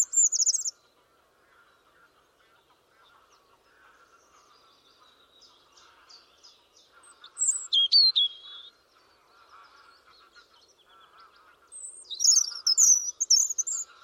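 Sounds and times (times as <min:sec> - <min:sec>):
European robin singing: 0:00.0 - 0:00.8, 0:04.1 - 0:13.9.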